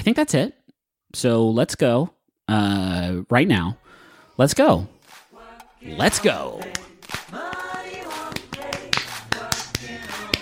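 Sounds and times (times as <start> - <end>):
speech: 0.0 - 5.0, 5.8 - 7.4
hand clapping: 6.1 - 10.4.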